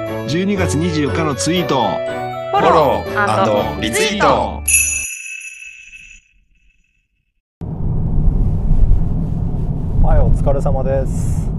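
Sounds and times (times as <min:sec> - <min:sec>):
speech: 0:00.2 - 0:05.0, 0:10.4 - 0:11.5
car interior road rumble and hiss while driving: 0:07.6 - 0:11.5.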